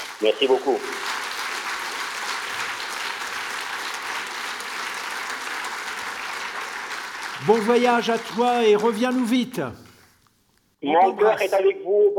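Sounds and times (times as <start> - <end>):
audience applause: 0.0 - 9.8
speech: 0.2 - 1.2, 7.4 - 9.8, 10.8 - 12.1.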